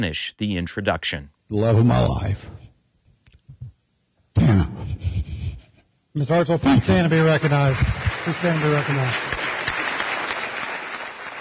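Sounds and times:
speech: 0:00.0 - 0:02.6, 0:06.2 - 0:09.3
many hands clapping in a state General Assembly chamber: 0:07.3 - 0:11.3.

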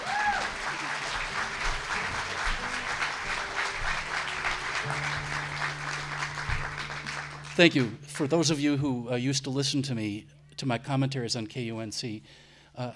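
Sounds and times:
audience round of applause: 0:00.0 - 0:08.0
speech: 0:07.6 - 0:12.9.

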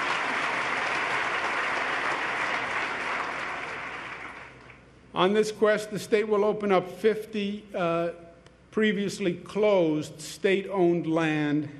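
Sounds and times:
audience applause: 0:00.0 - 0:04.8
speech: 0:05.2 - 0:11.7.

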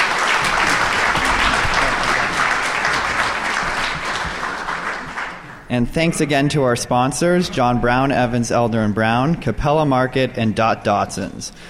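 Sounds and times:
audience applause: 0:00.0 - 0:05.6
speech: 0:05.7 - 0:11.6.

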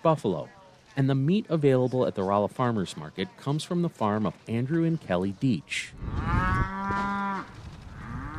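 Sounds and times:
speech: 0:00.0 - 0:06.3
beefalo mooing on a ranch in south central Missouri: 0:06.0 - 0:08.3.

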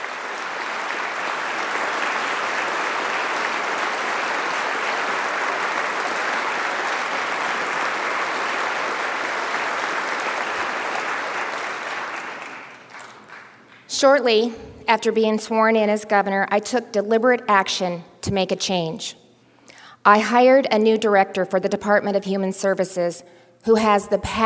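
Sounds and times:
legislators applauding: 0:00.0 - 0:13.9
speech: 0:14.0 - 0:19.2, 0:20.0 - 0:24.4.

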